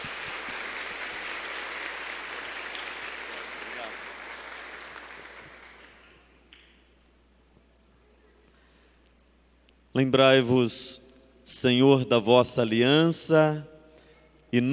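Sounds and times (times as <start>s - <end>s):
round of applause welcoming a visitor: 0.0s - 6.3s
speech: 10.0s - 13.7s, 14.5s - 14.7s.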